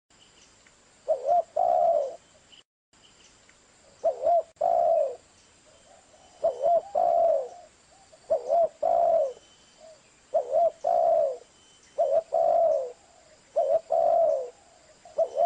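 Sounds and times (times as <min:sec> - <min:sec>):
spotted dove cooing: 0:01.1 - 0:02.2, 0:04.0 - 0:05.2, 0:05.9 - 0:15.4.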